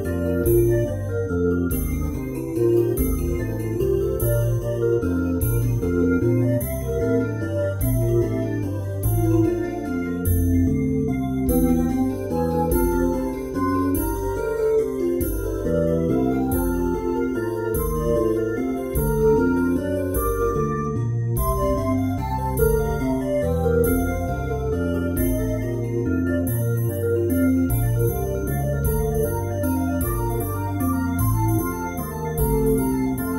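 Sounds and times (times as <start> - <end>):
fairground waltz music: 0.0 - 33.3.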